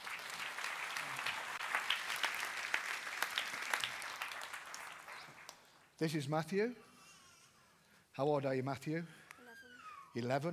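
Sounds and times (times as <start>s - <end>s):
audience applause: 0.0s - 5.6s
speech: 6.0s - 6.9s, 8.2s - 9.2s, 10.1s - 10.5s.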